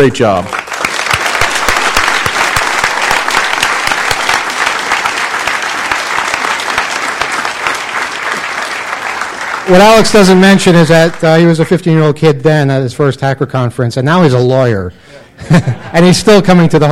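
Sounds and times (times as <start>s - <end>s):
speech: 0.0s - 0.6s, 9.7s - 16.9s
audience applause: 0.0s - 11.6s
laughter: 15.2s - 16.3s.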